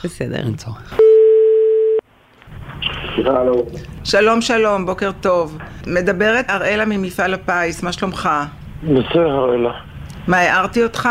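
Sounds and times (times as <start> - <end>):
speech: 0.0 - 1.1, 3.2 - 11.0
telephone tone: 1.0 - 2.0.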